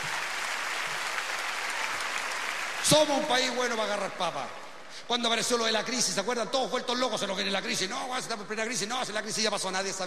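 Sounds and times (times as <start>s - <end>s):
audience applause for workers: 0.0s - 3.3s
speech: 2.8s - 10.0s.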